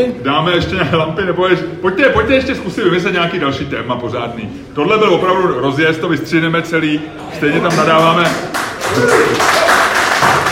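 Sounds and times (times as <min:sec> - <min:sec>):
speech: 0:00.0 - 0:09.8
audience clapping: 0:07.6 - 0:10.5.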